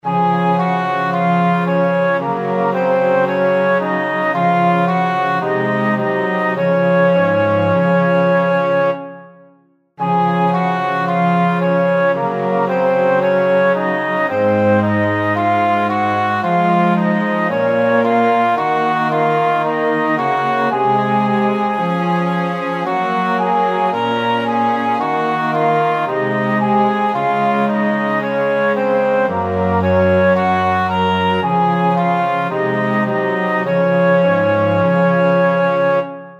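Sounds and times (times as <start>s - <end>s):
three-part instrumental music in D flat major: 0.0s - 36.3s.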